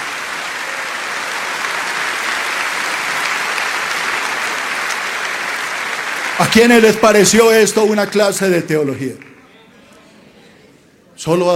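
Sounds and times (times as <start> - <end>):
audience applause: 0.0 - 9.5
speech: 6.4 - 9.3, 11.2 - 11.5.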